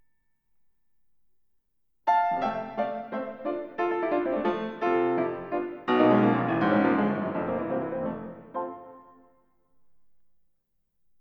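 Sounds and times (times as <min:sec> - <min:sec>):
organ playing with the Cromorne stop: 0:02.1 - 0:09.0.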